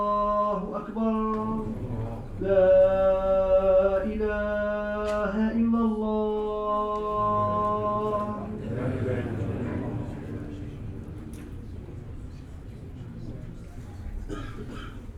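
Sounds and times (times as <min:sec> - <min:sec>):
chants at a mosque procession in Marseille: 0:00.0 - 0:11.2
imam prayers at a mosque procession in Marseille: 0:00.0 - 0:11.2
voices at a mosque procession in Marseille: 0:00.0 - 0:14.9.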